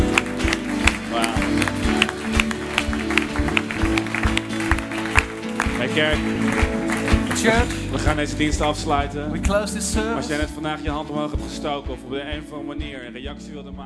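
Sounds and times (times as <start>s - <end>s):
church audience applause: 0.0s - 8.3s
speech: 6.0s - 6.8s, 7.4s - 13.8s.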